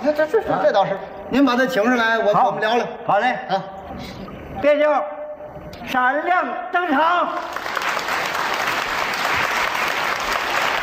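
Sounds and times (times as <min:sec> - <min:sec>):
speech: 0:00.0 - 0:07.8
audience applause: 0:07.4 - 0:10.8.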